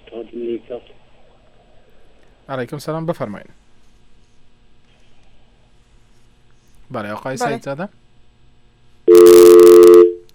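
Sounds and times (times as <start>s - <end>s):
speech: 0.3s - 1.1s, 2.5s - 3.6s, 6.9s - 8.0s
telephone line tone after a dropped call: 9.1s - 10.3s.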